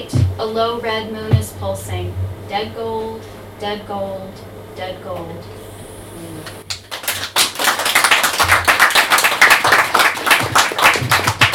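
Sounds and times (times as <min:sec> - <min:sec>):
speech: 0:00.4 - 0:05.6
audience clapping after a poem: 0:06.7 - 0:11.5.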